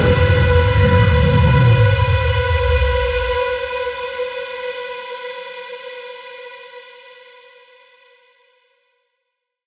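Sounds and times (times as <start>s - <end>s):
horror tension moan attack: 0.0s - 4.0s.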